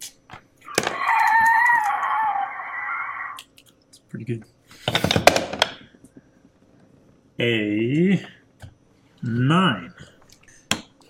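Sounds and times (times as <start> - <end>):
person imitating a ghost's horrible scream: 0.6 - 3.5
speech: 4.2 - 5.3, 7.4 - 8.3.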